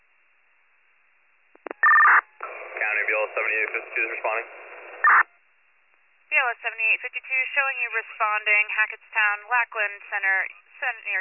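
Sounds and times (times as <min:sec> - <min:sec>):
dispatch alert tones: 0:01.6 - 0:02.2, 0:05.0 - 0:05.3
speech: 0:03.1 - 0:05.3, 0:06.3 - 0:11.1.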